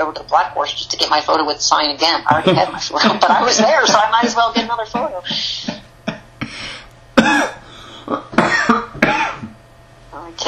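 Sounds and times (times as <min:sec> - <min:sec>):
speech: 0:00.0 - 0:05.8
laughter: 0:02.3 - 0:06.3
person in a coughing fit: 0:05.3 - 0:09.6
throat clearing: 0:07.2 - 0:09.6.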